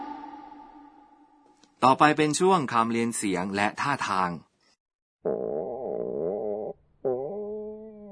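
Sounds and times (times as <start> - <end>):
speech: 1.8 - 4.5
stomach growling from hunger: 5.3 - 8.1.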